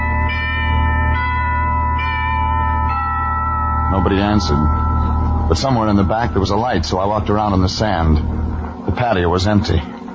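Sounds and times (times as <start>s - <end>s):
doorbell ringing: 0.0s - 8.8s
low constant hum: 0.0s - 10.1s
speech: 4.0s - 4.9s, 5.5s - 9.9s.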